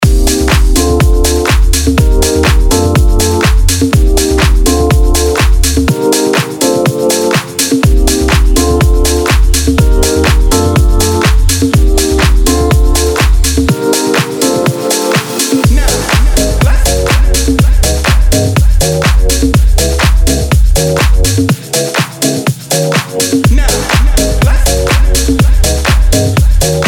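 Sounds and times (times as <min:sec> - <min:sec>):
music loops: 0:00.0 - 0:26.8.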